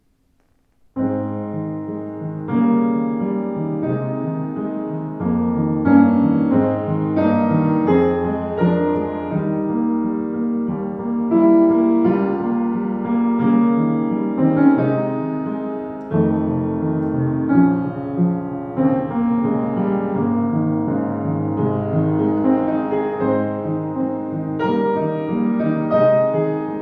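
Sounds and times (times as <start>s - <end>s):
Ibach piano: 0.0s - 26.8s.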